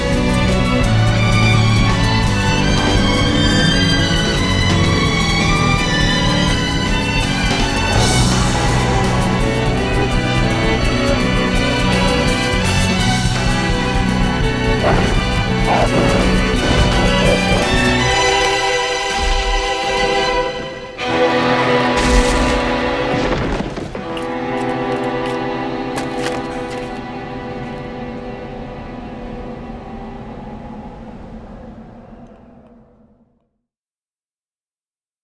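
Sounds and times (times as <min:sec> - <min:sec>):
percussion version: 0:00.0 - 0:27.5.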